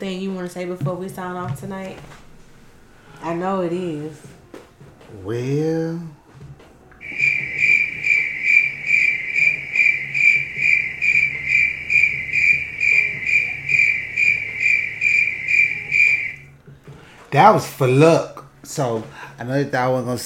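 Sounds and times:
speech: 0.0 - 2.3, 3.2 - 4.4, 5.1 - 6.2, 17.3 - 20.2
crickets chirping: 7.0 - 16.5.

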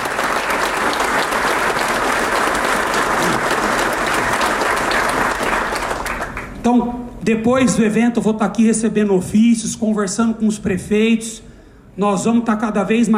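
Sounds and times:
round of applause from audience: 0.0 - 6.6
speech: 6.6 - 13.1.

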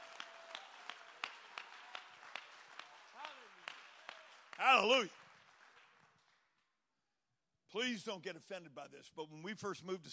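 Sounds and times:
audience clapping hands: 0.0 - 6.8
speech: 4.6 - 5.2, 7.7 - 10.1.

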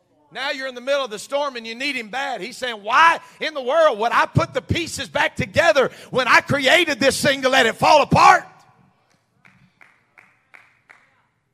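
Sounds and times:
speech: 0.3 - 8.5
single hand clap from the audience: 9.4 - 11.1.

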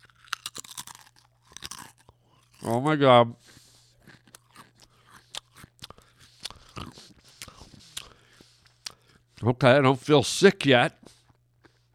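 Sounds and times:
Cool Ranch tortilla chip being bitten and chewed: 0.0 - 2.8, 3.9 - 8.2
speech: 2.6 - 3.5, 9.4 - 11.0.

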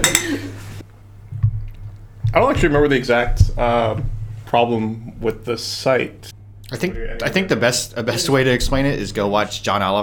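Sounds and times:
glasses clinking in a toast: 0.0 - 0.5
speech: 2.4 - 10.0.

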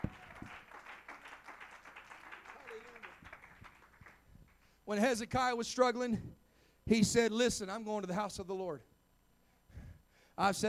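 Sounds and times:
audience clapping hands: 0.0 - 4.6
speech: 4.9 - 8.9, 10.4 - 10.6.

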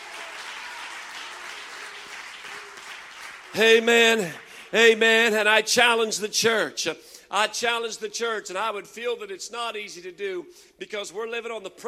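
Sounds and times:
audience clapping: 0.0 - 5.0
speech: 3.5 - 11.8.

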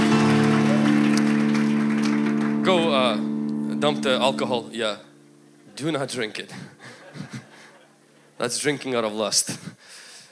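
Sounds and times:
audience applause: 0.0 - 4.7
speech: 2.7 - 5.1, 5.8 - 7.4, 8.4 - 9.8.

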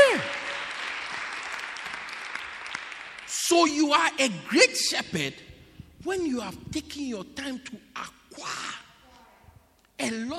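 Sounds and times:
audience clapping: 0.0 - 3.8
speech: 3.5 - 8.6, 10.0 - 10.3.

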